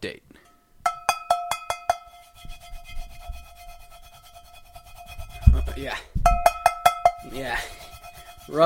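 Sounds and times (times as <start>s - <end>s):
speech: 0.0s - 0.2s, 5.8s - 6.1s, 7.4s - 7.8s
oil being rubbed into the surface of a cast iron pan: 1.7s - 8.6s.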